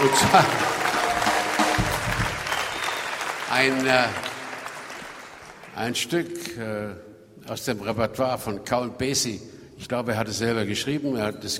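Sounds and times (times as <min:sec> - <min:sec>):
speech: 0:00.0 - 0:00.8, 0:03.5 - 0:04.3, 0:05.8 - 0:11.5
applause from a jazz concert audience: 0:00.0 - 0:05.8.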